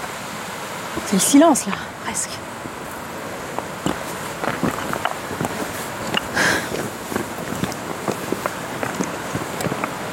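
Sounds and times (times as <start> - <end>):
faint breezy hiss: 0.0 - 10.1
speech: 1.0 - 2.7
footsteps walking outdoors on clay ground: 2.8 - 10.1.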